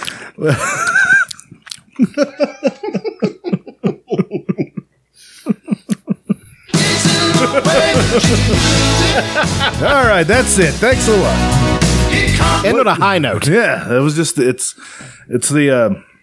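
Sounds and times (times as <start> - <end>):
person chewing Sour Patch Kids candy: 0.0 - 2.1
speech: 0.4 - 0.8, 2.0 - 3.6, 9.9 - 11.8, 12.4 - 16.1
laughter: 0.4 - 1.3, 2.0 - 6.6, 7.2 - 10.2.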